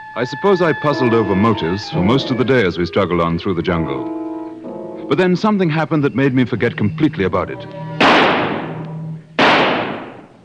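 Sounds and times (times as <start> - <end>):
speech: 0.2 - 4.2, 5.1 - 7.8
gunshots in a jungle shooting an antelope: 8.0 - 8.8, 9.4 - 10.4.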